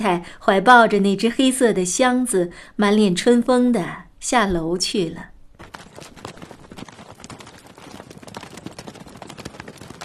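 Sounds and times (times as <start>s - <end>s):
speech: 0.0s - 5.7s
horse hooves clopping pulling a two-wheeled carriage through a village: 5.5s - 10.0s.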